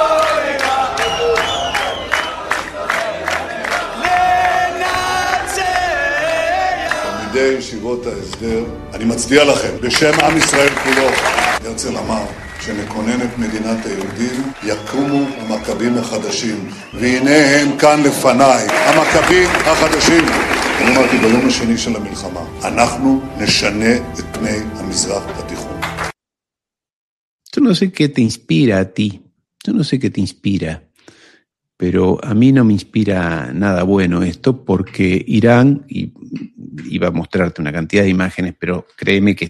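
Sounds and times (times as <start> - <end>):
crowd applauding: 0.0 - 7.7, 9.6 - 23.0, 24.8 - 26.2
speech: 7.4 - 25.7, 27.6 - 30.9, 31.8 - 39.4.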